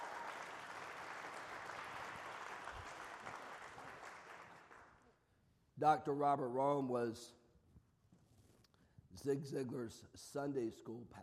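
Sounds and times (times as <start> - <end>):
audience applause: 0.0 - 5.0
speech: 5.8 - 7.4, 9.2 - 11.2.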